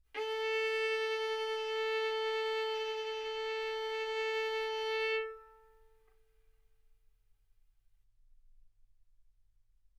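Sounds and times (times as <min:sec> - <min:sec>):
violin bowed arco notes: 0:00.2 - 0:05.9.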